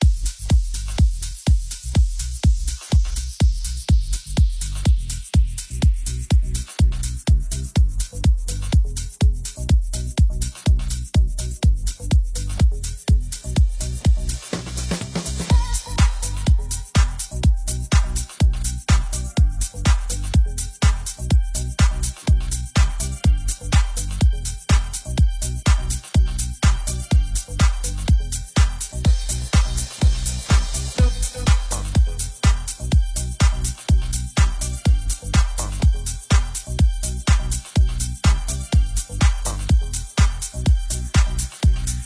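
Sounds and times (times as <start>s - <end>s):
1990s classic house music: 0.0s - 42.0s.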